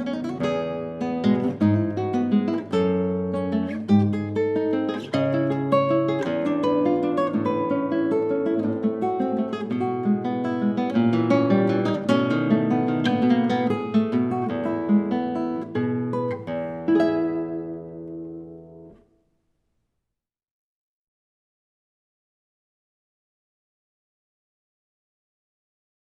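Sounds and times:
Venezuelan waltz on solo guitar: 0:00.0 - 0:19.4.

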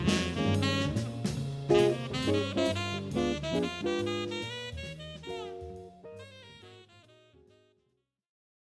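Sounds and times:
jazz quartet playing: 0:00.0 - 0:07.8.

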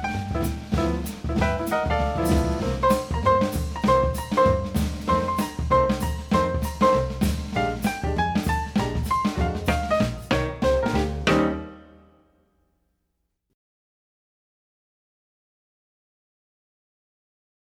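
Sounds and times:
jazz trio playing: 0:00.0 - 0:12.1.

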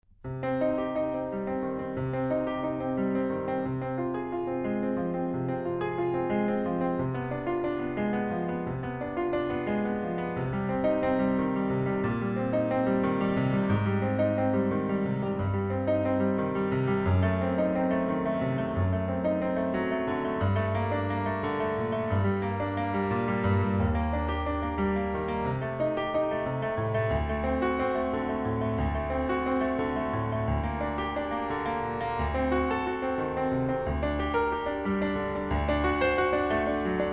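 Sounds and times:
classical prelude in C minor: 0:00.2 - 0:37.1.

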